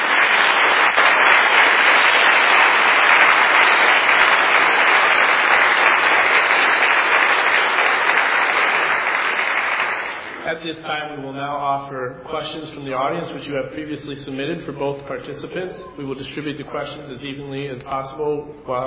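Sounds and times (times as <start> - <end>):
audience applause: 0.0 - 10.5
speech: 10.6 - 18.8.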